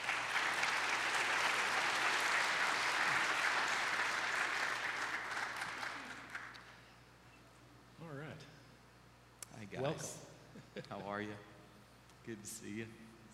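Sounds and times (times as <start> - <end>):
audience at a Christian academy event applauding: 0.0 - 6.7
speech: 9.8 - 10.2, 10.8 - 11.5, 12.2 - 13.1.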